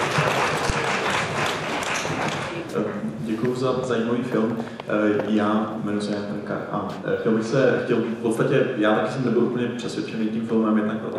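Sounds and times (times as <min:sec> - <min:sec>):
audience applause: 0:00.0 - 0:02.7
speech: 0:03.4 - 0:11.1.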